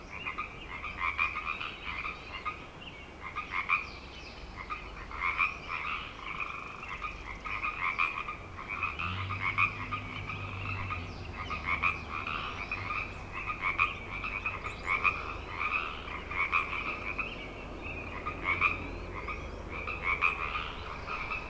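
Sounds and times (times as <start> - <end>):
frog chorus of pulsing trills: 0.0 - 2.6, 3.2 - 4.0, 4.6 - 21.4.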